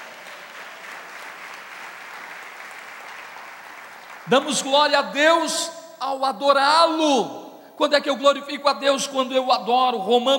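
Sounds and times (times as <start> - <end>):
audience applauding loudly: 0.0 - 5.0
speech: 4.2 - 10.3.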